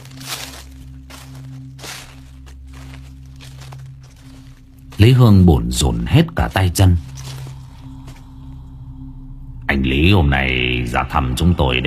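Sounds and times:
rustling footsteps: 0:00.0 - 0:08.6
steady low droning hum: 0:00.0 - 0:11.8
speech: 0:05.0 - 0:07.1, 0:09.8 - 0:11.8.

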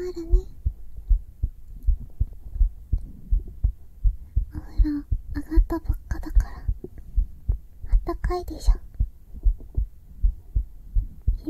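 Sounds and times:
speech: 0:00.0 - 0:00.5, 0:05.7 - 0:06.0, 0:08.3 - 0:08.9
heartbeat on bare skin through a binaural microphone: 0:00.0 - 0:11.4.

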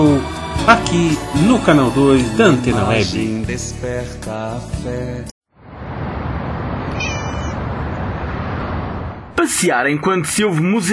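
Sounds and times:
speech: 0:00.0 - 0:05.3, 0:09.4 - 0:10.9
steady rushing noise: 0:05.6 - 0:09.4
cat meowing: 0:06.9 - 0:07.6.

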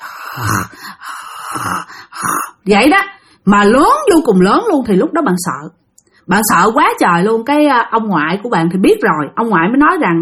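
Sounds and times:
person imitating loud heavy breathing: 0:00.0 - 0:02.6
speech: 0:00.4 - 0:01.7, 0:02.6 - 0:10.2.

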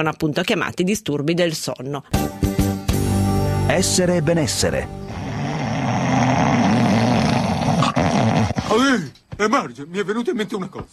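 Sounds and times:
speech: 0:00.0 - 0:02.4, 0:03.7 - 0:05.0, 0:08.7 - 0:10.9
loud rough snoring: 0:05.0 - 0:08.9.

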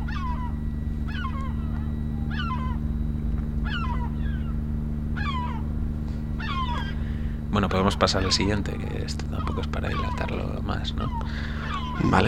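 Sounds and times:
seagulls calling: 0:00.0 - 0:12.2
speech: 0:07.6 - 0:12.2.

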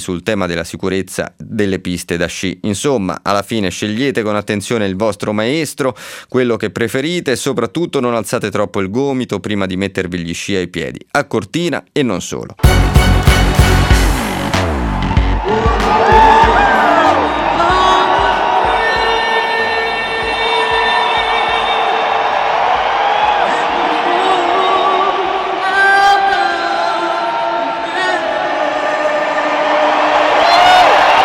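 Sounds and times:
speech: 0:00.0 - 0:13.0
crowd of 80,000 roaring at Wembley stadium: 0:12.6 - 0:31.2.

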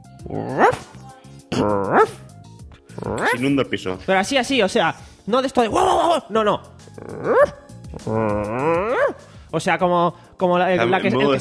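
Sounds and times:
speech: 0:00.2 - 0:01.0, 0:01.6 - 0:02.2, 0:03.1 - 0:11.3
female dog barking: 0:00.3 - 0:01.0, 0:01.8 - 0:02.2, 0:03.0 - 0:03.5, 0:07.3 - 0:07.6, 0:08.9 - 0:09.2.

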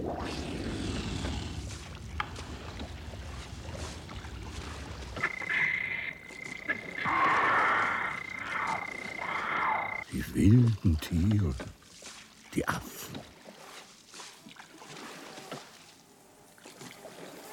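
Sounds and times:
low rumbling swamp wash: 0:00.6 - 0:10.0
constant hiss: 0:05.1 - 0:11.7
frogs trilling and croaking in swamp jungle: 0:05.2 - 0:10.2
speech: 0:10.4 - 0:11.8, 0:12.6 - 0:13.3.

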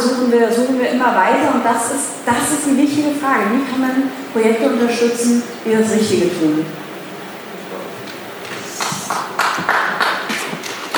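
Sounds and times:
speech: 0:00.3 - 0:06.8
audience applause: 0:08.4 - 0:10.9.

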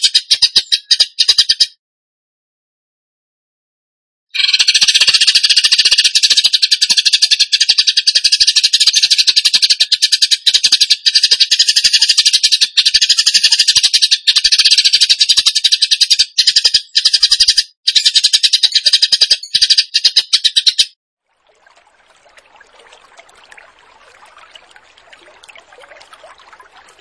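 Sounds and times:
bird song in loud rattling trills: 0:00.0 - 0:01.8, 0:04.4 - 0:21.0.

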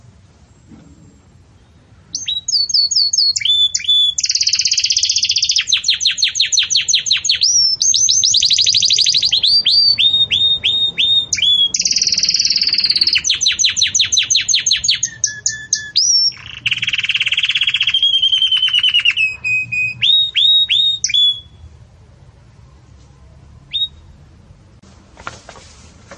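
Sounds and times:
Belgian canary song: 0:01.5 - 0:21.7, 0:23.6 - 0:24.2
faint rustling: 0:24.8 - 0:26.1.

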